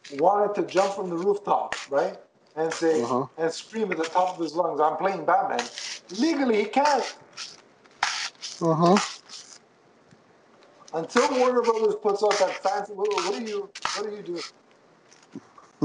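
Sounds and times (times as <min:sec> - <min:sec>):
speech: 0:00.1 - 0:07.5, 0:08.6 - 0:09.1, 0:10.9 - 0:14.6, 0:15.3 - 0:15.8
scissors stabbing and cutting styrofoam: 0:05.6 - 0:09.6, 0:11.0 - 0:14.5.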